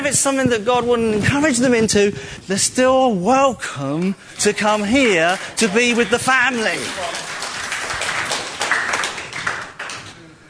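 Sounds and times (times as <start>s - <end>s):
speech: 0.0s - 7.2s
audience applauding: 5.0s - 10.2s.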